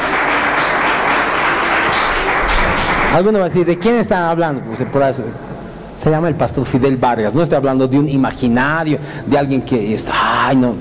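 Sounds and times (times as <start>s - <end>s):
audience applause: 0.0s - 3.6s
speech: 3.2s - 5.4s, 6.0s - 10.8s.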